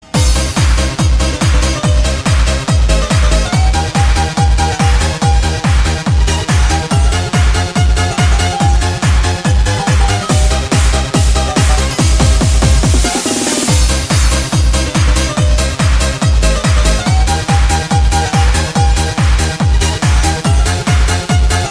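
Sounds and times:
Greek dance music mix: 0.0s - 21.6s.

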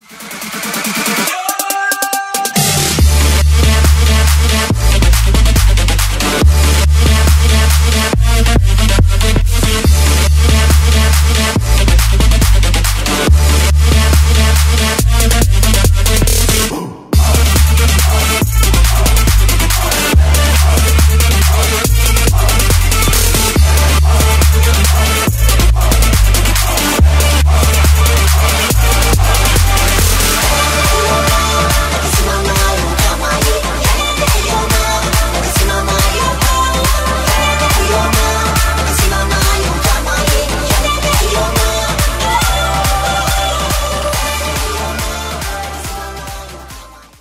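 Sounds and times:
trap beat: 0.0s - 47.1s.

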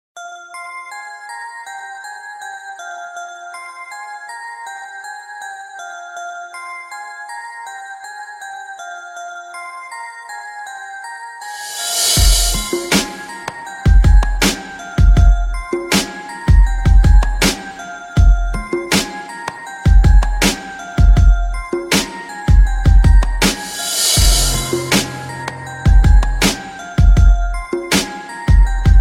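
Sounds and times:
music beat: 11.5s - 29.0s.

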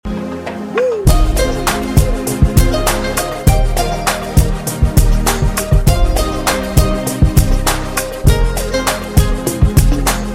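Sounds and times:
melody for SMS: 0.1s - 10.3s.

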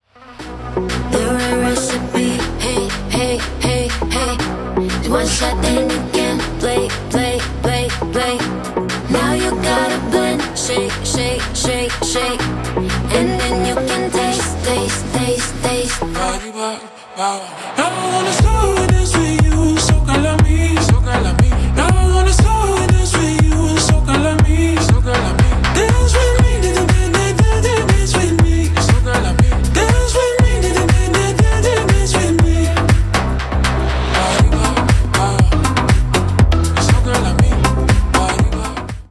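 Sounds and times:
slow dance music: 0.2s - 39.1s.

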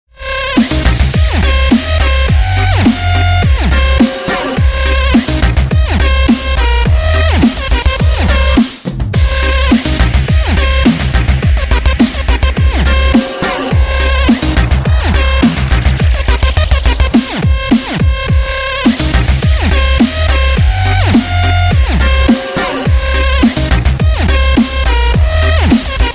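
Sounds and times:
dubstep music: 0.2s - 26.1s.

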